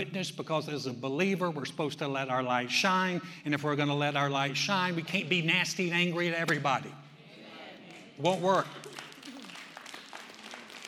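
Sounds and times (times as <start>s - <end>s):
speech: 0.0s - 7.0s, 8.2s - 9.0s
tepid audience applause: 7.9s - 10.8s.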